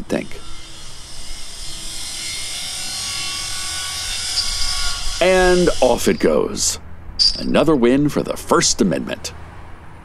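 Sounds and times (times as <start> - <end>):
speech: 0.1 - 0.5, 5.2 - 9.4
welding torch cutting through a padlock and heavy chain on a silo door: 0.6 - 6.8.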